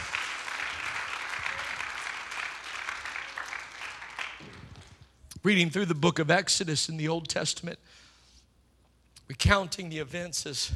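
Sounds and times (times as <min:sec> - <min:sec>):
audience clapping hands: 0:00.0 - 0:05.2
speech: 0:05.4 - 0:08.0, 0:09.3 - 0:10.7.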